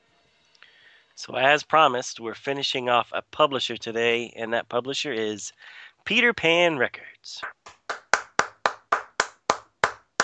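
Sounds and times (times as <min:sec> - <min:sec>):
speech: 0:01.2 - 0:07.8
clapping: 0:07.6 - 0:10.2.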